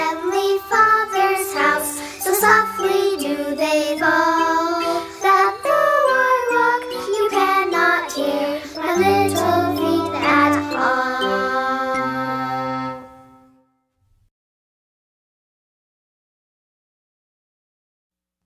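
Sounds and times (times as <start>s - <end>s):
music: 0.0s - 14.0s.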